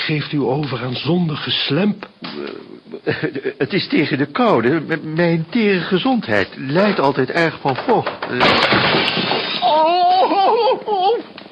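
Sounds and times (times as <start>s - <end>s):
speech: 0.1s - 11.4s
laughter: 2.9s - 3.7s, 9.9s - 11.3s
leak-damaged ceiling bursting open: 6.8s - 10.3s.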